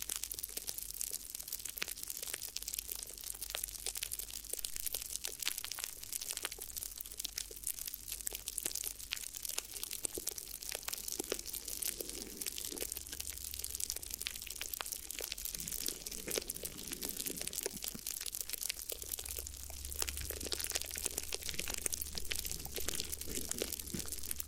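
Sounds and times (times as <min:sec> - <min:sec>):
crinkly ear massage crinkling: 0:00.1 - 0:24.4
low steady rumble: 0:10.1 - 0:24.4.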